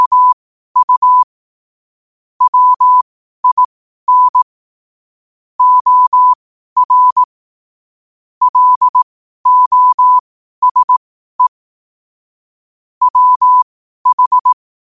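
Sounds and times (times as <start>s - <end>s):
morse code at 5 wpm: 0.0s - 1.3s, 2.4s - 4.5s, 5.6s - 7.3s, 8.4s - 11.5s, 13.0s - 14.6s.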